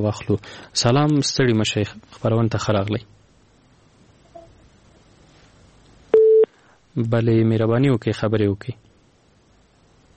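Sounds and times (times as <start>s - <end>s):
speech: 0.0s - 3.2s, 7.0s - 8.9s
telephone busy beep after a dropped radio listener call: 6.1s - 6.5s.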